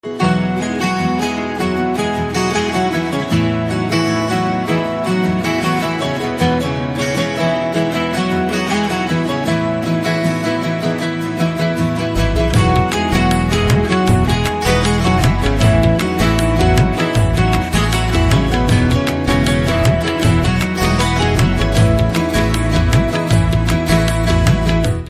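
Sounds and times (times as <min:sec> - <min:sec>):
instrumental background music ringtone: 0:00.0 - 0:25.0.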